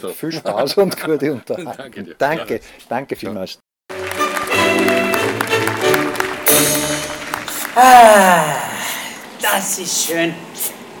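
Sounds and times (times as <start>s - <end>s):
speech: 0.0s - 3.6s, 7.8s - 8.8s, 9.4s - 10.8s
applause: 3.9s - 8.5s.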